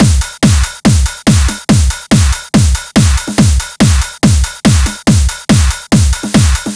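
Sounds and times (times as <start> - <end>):
break beats at 140 BPM: 0.0 - 6.7.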